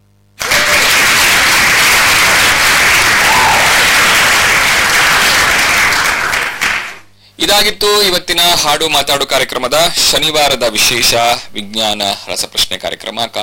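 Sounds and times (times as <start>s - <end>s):
applause for listeners who sent correct quiz answers: 0.4s - 7.1s
speech: 7.5s - 13.4s.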